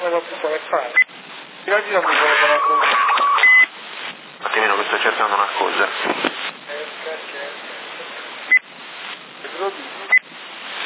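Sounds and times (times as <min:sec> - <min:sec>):
steady hiss: 0:00.0 - 0:10.8
speech: 0:01.9 - 0:03.0
mobile phone keypad beeps typing a text: 0:02.6 - 0:03.7.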